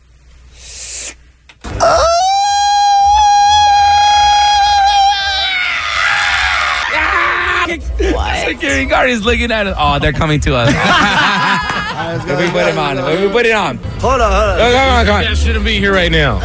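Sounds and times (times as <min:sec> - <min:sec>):
long Mexican grito scream: 0:01.8 - 0:08.5
speech: 0:09.0 - 0:11.3, 0:12.2 - 0:16.4
laughter: 0:09.8 - 0:13.8.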